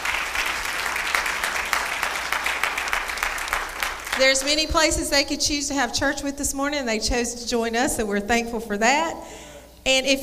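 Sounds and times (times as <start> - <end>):
applause from a morning church service congregation: 0.0 - 4.7
speech: 4.2 - 10.2.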